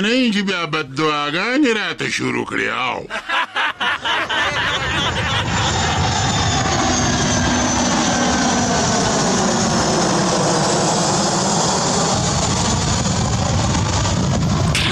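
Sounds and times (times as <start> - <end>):
speech: 0.0 - 3.5
laughter: 3.0 - 6.1
airplane engines roaring in flight at altitude: 4.0 - 14.8.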